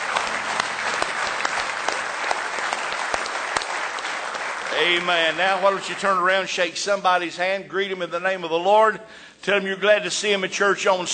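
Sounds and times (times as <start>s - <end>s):
audience hand clapping: 0.0s - 7.0s
speech: 4.8s - 11.1s.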